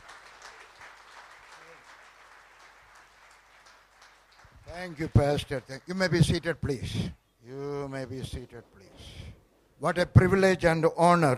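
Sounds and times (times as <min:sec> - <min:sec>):
congregation applauding at an Easter church service welcoming a guest speaker: 0:00.0 - 0:06.5
speech: 0:04.7 - 0:07.2, 0:07.9 - 0:09.1, 0:09.8 - 0:11.3.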